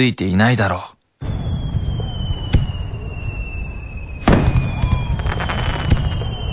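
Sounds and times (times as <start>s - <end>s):
speech: 0.0s - 0.9s
crackling sparkle of fireworks: 1.2s - 6.5s
summer aerial fireworks exploding over a river: 1.2s - 6.5s
faint high whistle: 1.3s - 6.5s.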